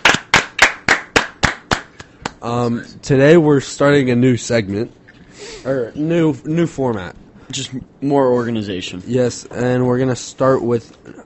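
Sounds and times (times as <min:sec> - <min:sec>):
clapping: 0:00.0 - 0:02.4
speech: 0:02.4 - 0:05.0, 0:05.6 - 0:11.2.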